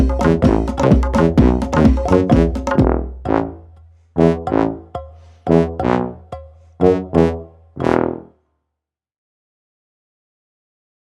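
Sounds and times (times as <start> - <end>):
Balkan brass band underscore: 0.0 - 8.3.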